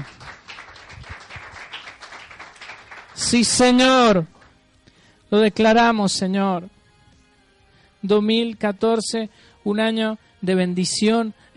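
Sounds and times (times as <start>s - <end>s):
audience applauding: 0.0s - 4.5s
speech: 3.2s - 4.4s, 5.3s - 6.8s, 8.0s - 11.5s.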